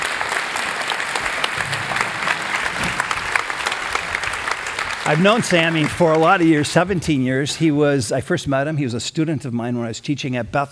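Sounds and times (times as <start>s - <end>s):
audience applause at a church gathering: 0.0s - 7.3s
speech: 5.1s - 10.7s.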